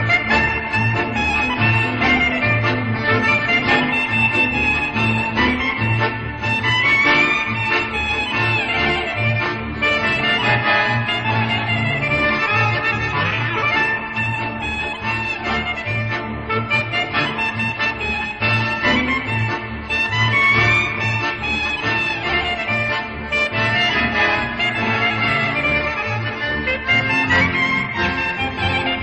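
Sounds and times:
wedding march music: 0:00.0 - 0:29.0.

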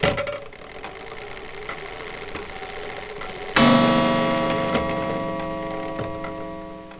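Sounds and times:
clock: 0:01.8 - 0:06.9.

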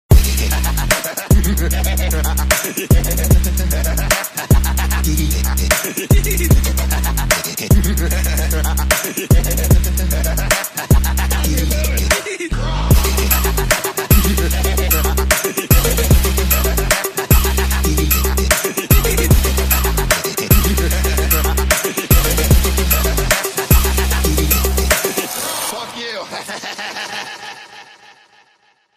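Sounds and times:
person giggling: 0:00.6 - 0:25.1, 0:25.7 - 0:28.9.

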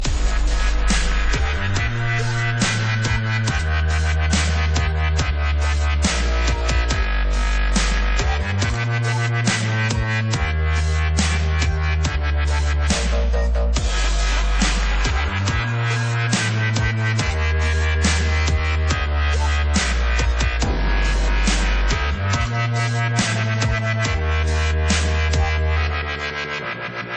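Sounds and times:
dubstep remix: 0:00.0 - 0:27.1.

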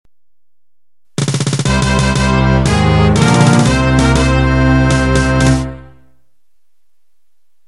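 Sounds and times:
victory jingle: 0:01.2 - 0:06.0.

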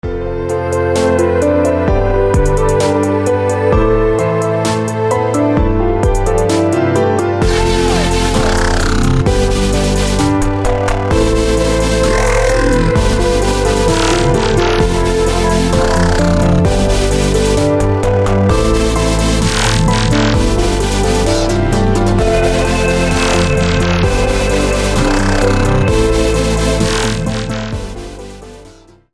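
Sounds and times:
music: 0:00.0 - 0:29.1.

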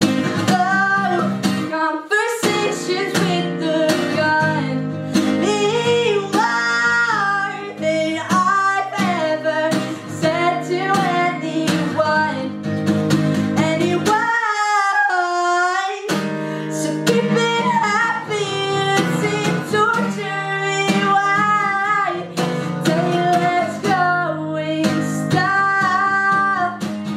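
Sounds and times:
person singing: 0:00.0 - 0:12.6, 0:13.2 - 0:27.0.

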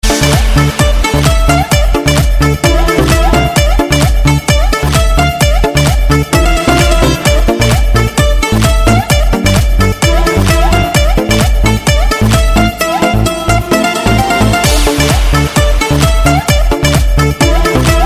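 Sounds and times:
club remix music: 0:00.0 - 0:18.0.

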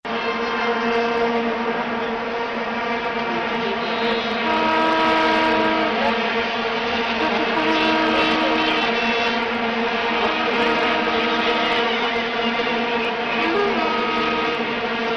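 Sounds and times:
vuvuzela blowing: 0:00.1 - 0:15.1.

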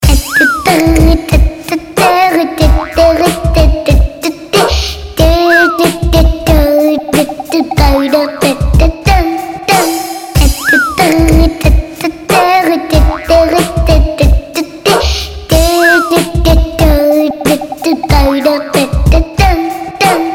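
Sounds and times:
cute song: 0:00.0 - 0:20.3.

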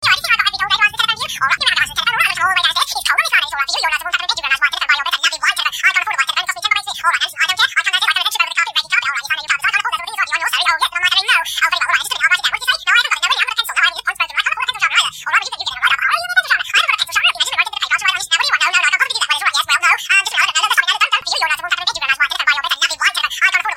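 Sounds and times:
movie-style telephone sound: 0:00.0 - 0:23.7.

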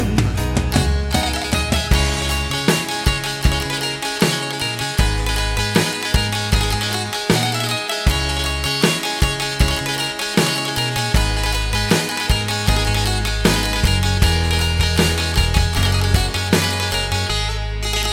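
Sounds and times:
Albanian cifteli playing: 0:00.5 - 0:18.1.

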